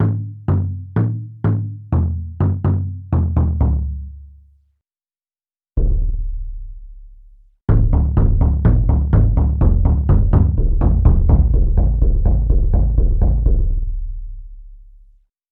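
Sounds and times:
taiko drum: 0:00.1 - 0:04.1, 0:05.8 - 0:06.7, 0:07.7 - 0:13.9.

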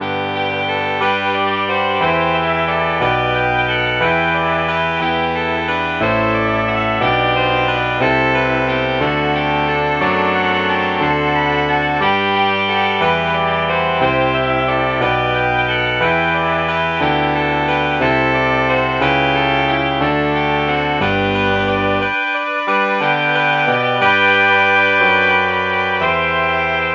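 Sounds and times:
soprano sax: 0:00.0 - 0:26.9.

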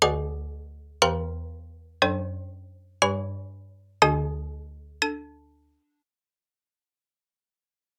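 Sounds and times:
xylophone: 0:00.0 - 0:05.6.

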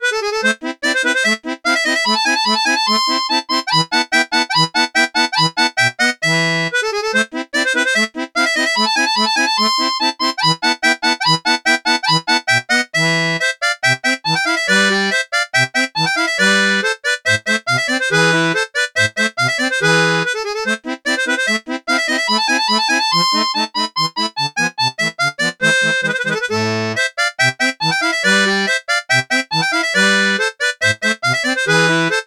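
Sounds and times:
harmonica: 0:00.0 - 0:32.2.

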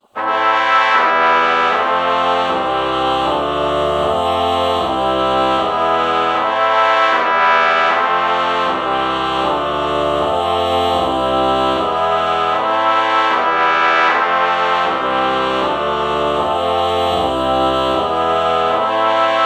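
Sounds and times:
trumpet chord morphing: 0:00.2 - 0:19.4.

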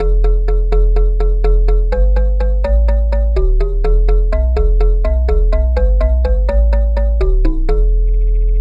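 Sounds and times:
vibraphone bass: 0:00.0 - 0:08.5.

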